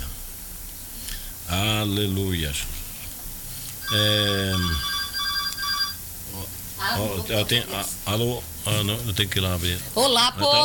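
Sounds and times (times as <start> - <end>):
speech: 1.5 - 2.8, 3.9 - 4.9, 6.4 - 10.6
telephone ringing: 3.8 - 6.0.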